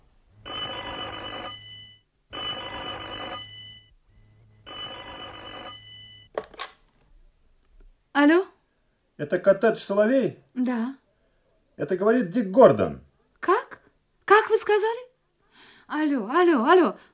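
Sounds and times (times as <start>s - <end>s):
telephone bell ringing: 0.4s - 6.3s
speech: 8.2s - 8.5s, 9.2s - 11.0s, 11.8s - 13.6s, 15.9s - 17.1s.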